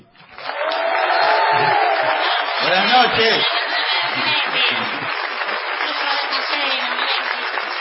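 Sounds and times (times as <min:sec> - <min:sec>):
audience ovation with applause: 0:00.2 - 0:07.7
laughter: 0:01.3 - 0:06.1
speech: 0:03.2 - 0:03.6.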